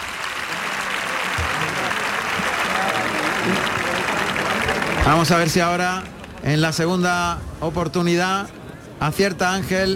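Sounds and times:
bullfight audience applauding to encourage the matador: 0:00.0 - 0:06.8
speech: 0:05.0 - 0:09.9.

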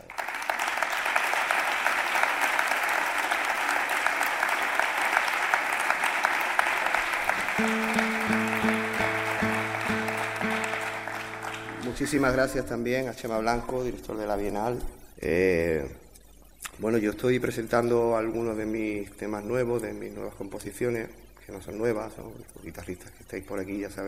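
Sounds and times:
audience applause: 0:00.0 - 0:12.6
speech: 0:07.6 - 0:08.0, 0:12.0 - 0:16.0, 0:16.8 - 0:24.0.

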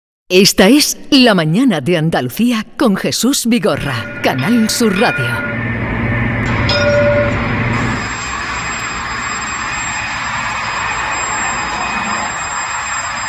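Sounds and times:
speech: 0:00.3 - 0:05.7
Jaén tram running on test trip: 0:03.4 - 0:13.2.

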